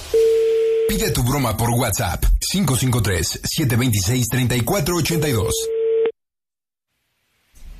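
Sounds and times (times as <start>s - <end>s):
telephone busy tone after hang-up: 0.1s - 0.9s, 5.2s - 6.1s
speech: 0.9s - 5.7s.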